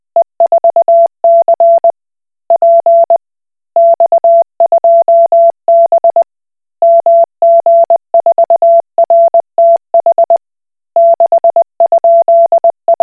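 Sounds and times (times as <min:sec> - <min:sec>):
Koch Morse code beeps: 0:00.2 - 0:01.9, 0:02.6 - 0:03.2, 0:03.8 - 0:06.2, 0:06.8 - 0:10.4, 0:11.0 - 0:13.0.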